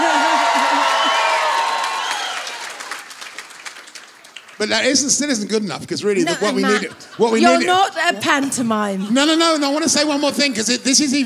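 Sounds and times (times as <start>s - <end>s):
laughter: 0.0s - 1.5s, 6.1s - 8.2s
audience cheering: 0.0s - 5.1s
speech: 4.6s - 11.2s.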